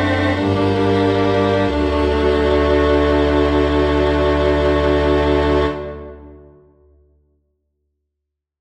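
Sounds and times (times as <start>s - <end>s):
chorale for string quintet: 0.0s - 6.7s.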